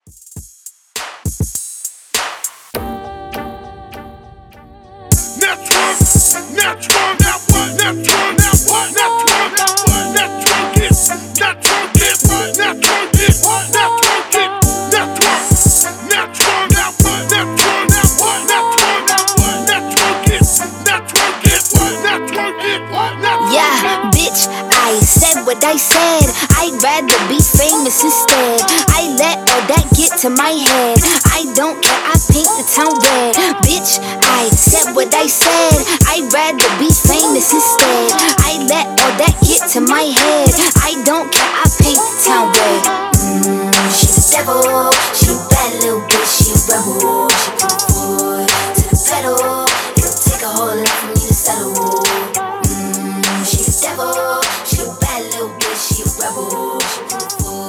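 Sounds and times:
hype music break and outro at 101 BPM: 0.2 - 57.6.

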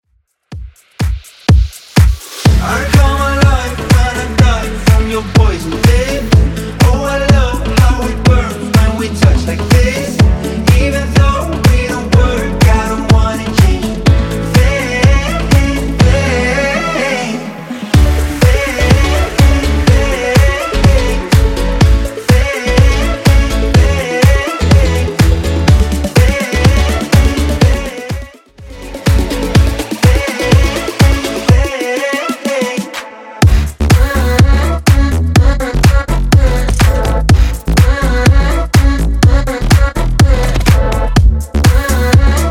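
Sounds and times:
Top40 club mix at 124 bpm: 0.4 - 42.4.

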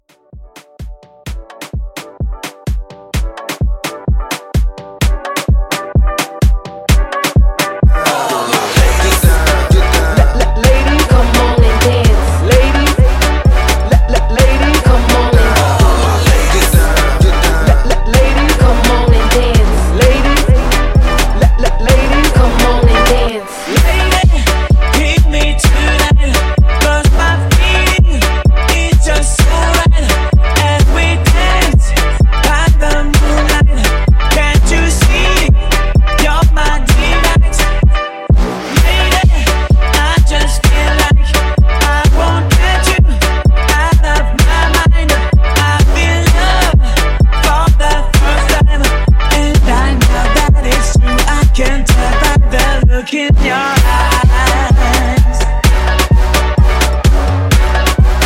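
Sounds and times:
Afro hype beat: 0.1 - 58.2.

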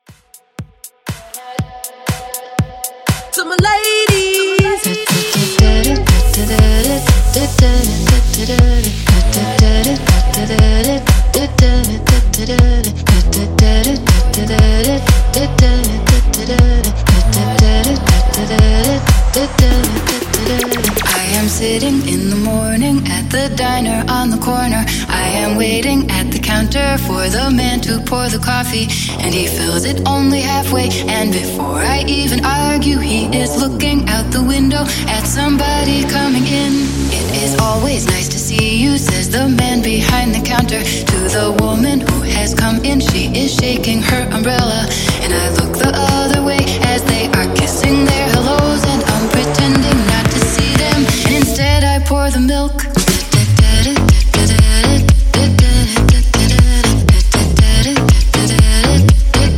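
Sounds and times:
house mixshow blend: 0.0 - 59.5.

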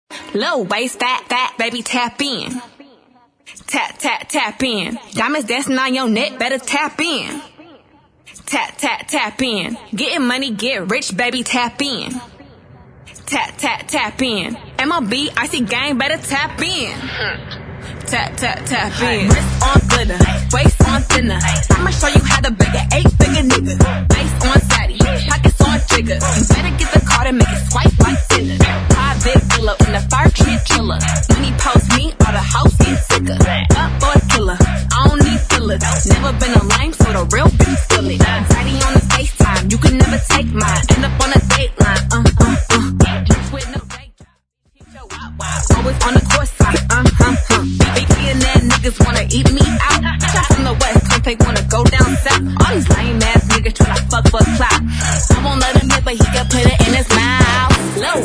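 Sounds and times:
a cappella vocals: 1.0 - 58.2.

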